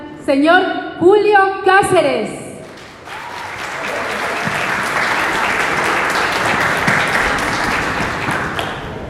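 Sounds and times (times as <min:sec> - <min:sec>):
speech: 0:00.2 - 0:02.4
strong audience applause: 0:02.6 - 0:09.0.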